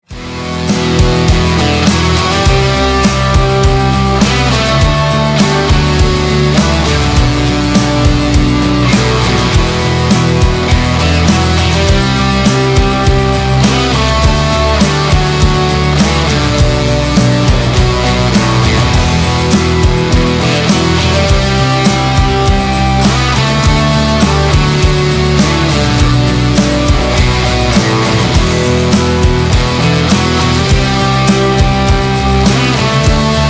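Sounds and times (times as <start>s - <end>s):
instrumental music: 0.0s - 33.4s.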